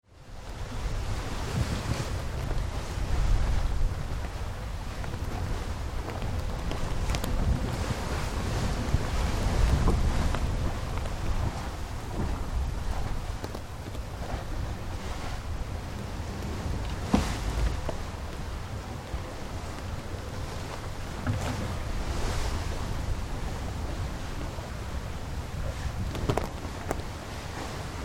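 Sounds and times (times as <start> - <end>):
galleon tall ship under sail: 0.0 - 28.0.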